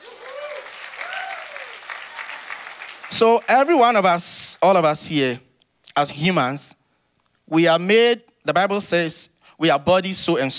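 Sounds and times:
audience clapping: 0.0s - 3.8s
speech: 3.2s - 6.8s, 7.5s - 10.5s.

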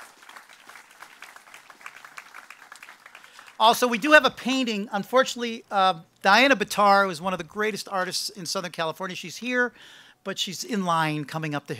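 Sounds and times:
audience applause: 0.0s - 3.8s
speech: 3.6s - 11.7s.

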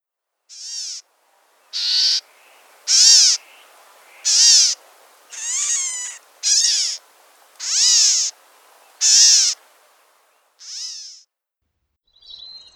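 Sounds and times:
California Gnatcatcher mewing calls: 0.5s - 11.2s.

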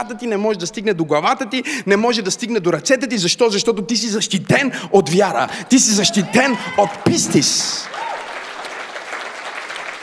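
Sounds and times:
speech: 0.0s - 8.1s
audience applause: 6.4s - 10.0s.

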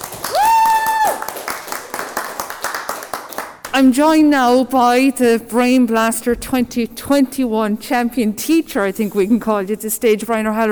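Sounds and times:
audience cheering: 0.0s - 2.8s
applause: 0.0s - 3.8s
speech: 3.8s - 10.7s.

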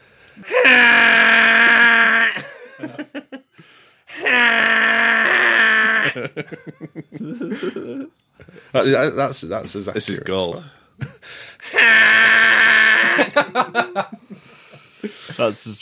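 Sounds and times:
speech: 0.4s - 0.7s, 6.2s - 11.1s, 13.4s - 15.8s
voice imitating T-Rex foghorn roar: 0.5s - 2.4s, 4.1s - 6.2s, 11.7s - 13.3s
breathy laughter: 0.5s - 3.7s, 5.1s - 8.7s, 11.0s - 15.4s.

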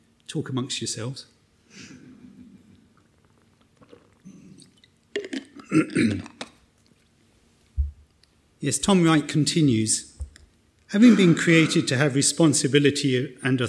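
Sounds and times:
speech: 0.3s - 2.0s, 5.7s - 6.3s, 8.6s - 10.1s, 10.9s - 13.6s
person sipping and swallowing water: 2.2s - 7.0s.

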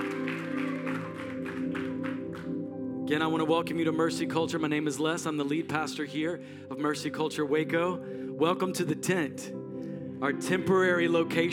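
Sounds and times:
audience applause: 0.0s - 2.6s
sustained humming keyboard chord: 0.0s - 11.5s
speech: 3.1s - 9.6s, 10.2s - 11.5s.

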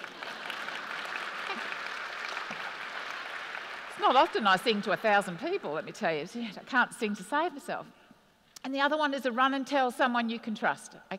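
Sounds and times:
audience applause: 0.0s - 6.0s
speech: 4.0s - 8.0s, 8.6s - 11.1s.

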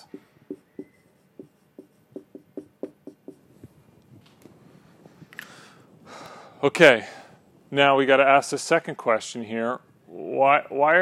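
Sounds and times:
scratchy pen strokes of handwriting: 0.0s - 3.7s
speech: 6.6s - 11.0s.

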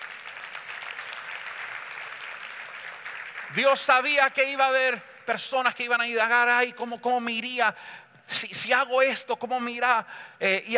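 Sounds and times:
audience applauding: 0.0s - 3.8s
speech: 3.5s - 10.7s.

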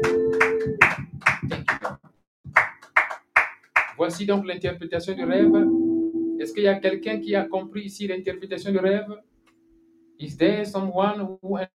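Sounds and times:
audience clapping hands: 0.0s - 4.3s
speech: 4.0s - 9.3s, 10.2s - 11.7s.

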